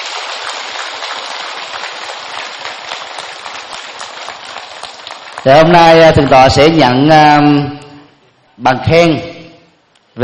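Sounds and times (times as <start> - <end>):
audience applause: 0.0 - 6.4
speech: 5.4 - 7.8, 8.6 - 9.3.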